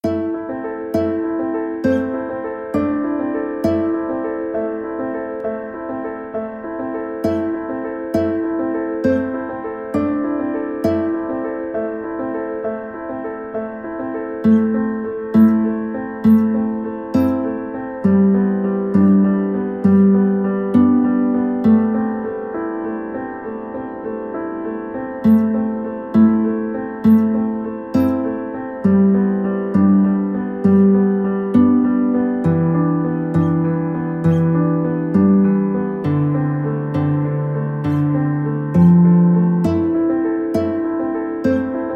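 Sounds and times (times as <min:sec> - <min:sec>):
guitar: 0:00.0 - 0:41.9.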